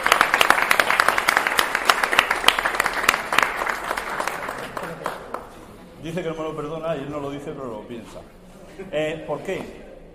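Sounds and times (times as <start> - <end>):
audience applause: 0.0 - 5.6
speech: 6.1 - 9.8.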